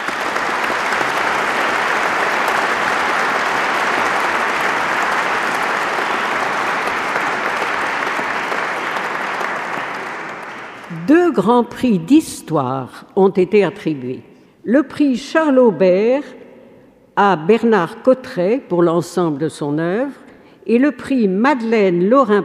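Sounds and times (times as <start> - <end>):
audience applause for prize winners: 0.0 - 10.9
speech: 11.4 - 16.4, 17.2 - 22.4.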